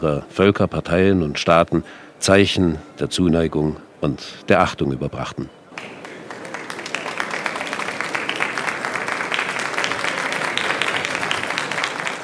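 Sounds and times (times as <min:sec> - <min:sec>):
speech: 0:00.0 - 0:05.9
guests applauding at a state reception: 0:05.7 - 0:12.2.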